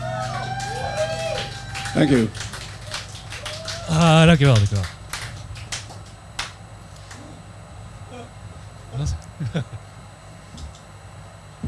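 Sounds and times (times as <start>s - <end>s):
laughter: 0.0s - 5.9s, 8.1s - 10.0s
weak audience clapping: 0.0s - 7.5s
speech: 2.0s - 2.6s, 3.9s - 5.0s, 9.0s - 9.8s.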